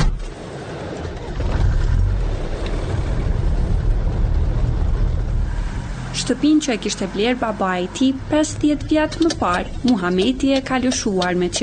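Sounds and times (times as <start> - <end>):
old red car engine rumbling on the move: 0.0 - 11.6
road noise: 0.0 - 11.6
speech: 6.3 - 11.6.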